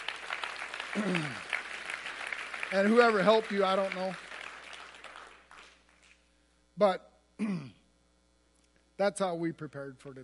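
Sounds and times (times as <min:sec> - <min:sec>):
quiet audience applause: 0:00.0 - 0:06.2
speech: 0:01.0 - 0:01.4, 0:02.7 - 0:04.2, 0:06.8 - 0:07.7, 0:09.0 - 0:10.2.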